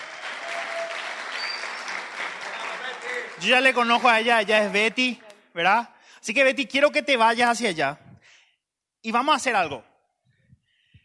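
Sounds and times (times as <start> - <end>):
audience applause at a live talk: 0.0 - 5.0
speech: 3.4 - 8.0, 9.0 - 9.9.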